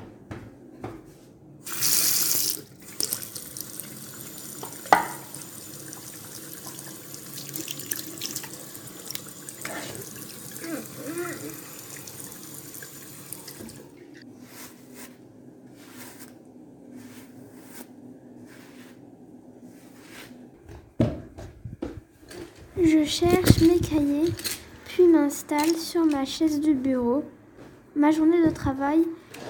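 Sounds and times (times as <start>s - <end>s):
bathroom tap running: 1.7s - 10.7s
speech: 23.1s - 24.6s, 25.2s - 27.3s, 28.0s - 29.1s
items clinking: 23.3s - 26.3s.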